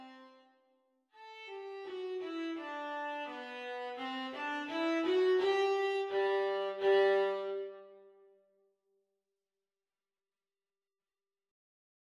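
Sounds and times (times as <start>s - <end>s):
viola duet at exam speed: 1.2s - 8.0s.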